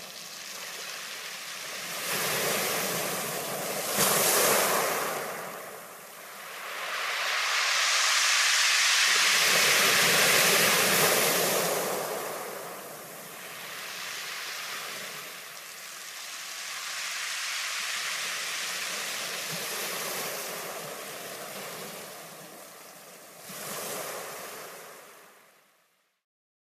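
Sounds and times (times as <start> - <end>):
white noise: 0.0 - 21.2.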